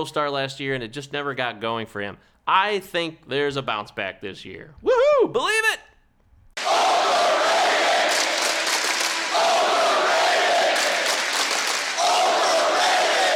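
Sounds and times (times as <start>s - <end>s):
speech: 0.0s - 5.9s
crowd booing: 6.6s - 13.3s.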